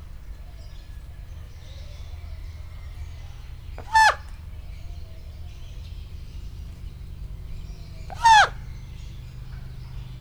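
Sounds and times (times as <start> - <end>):
raven calling at Nyíregyháza zoo: 3.4 - 4.9, 7.4 - 10.1.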